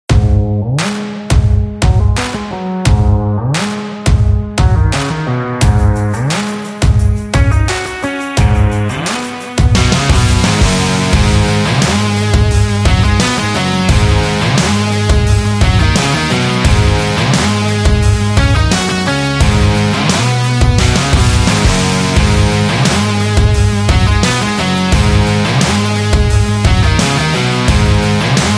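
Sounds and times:
indie rock music: 0:00.1 - 0:28.5.

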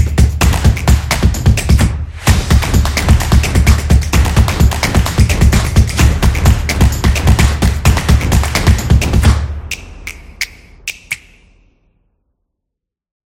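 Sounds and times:
drums: 0:00.0 - 0:09.5.

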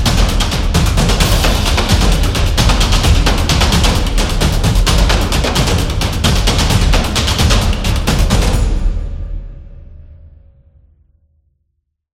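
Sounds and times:
sport drums: 0:00.0 - 0:09.1.

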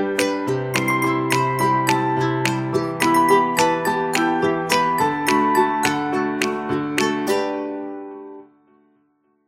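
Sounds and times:
upbeat ukulele: 0:00.0 - 0:08.3
guitar: 0:00.0 - 0:09.1.

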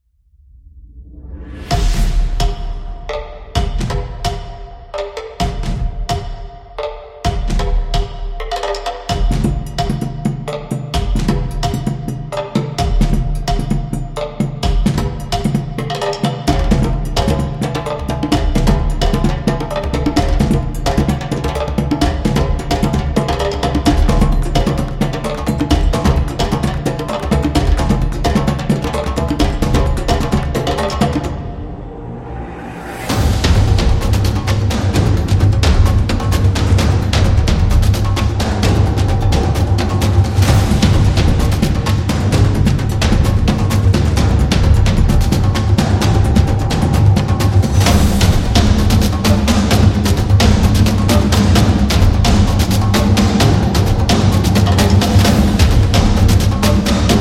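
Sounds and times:
African percussion: 0:01.4 - 0:57.1.

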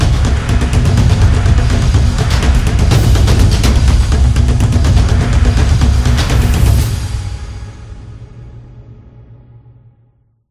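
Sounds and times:
traditional taiko drums: 0:00.0 - 0:07.9.

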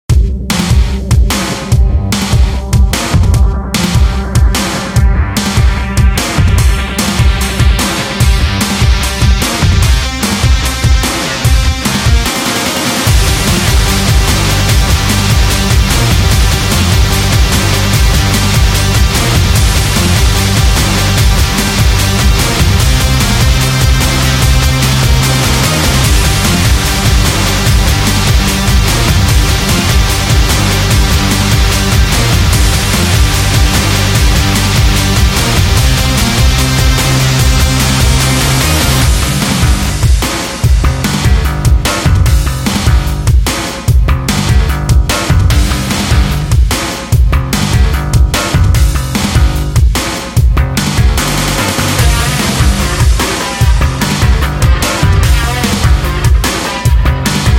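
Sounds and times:
electro rock music: 0:00.0 - 0:57.5.

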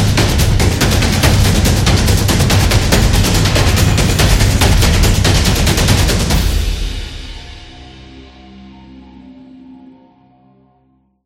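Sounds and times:
tribal drums run: 0:00.0 - 0:08.5.

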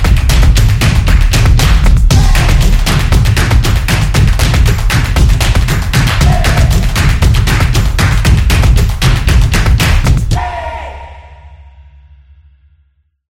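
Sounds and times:
soccer drums: 0:00.0 - 0:10.5.

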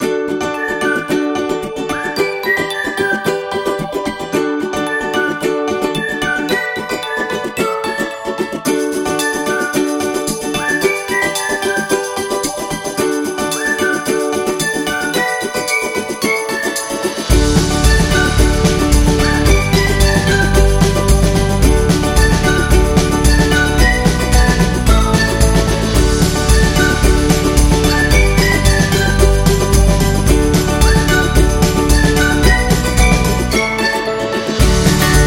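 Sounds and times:
happy music: 0:00.0 - 0:35.2.

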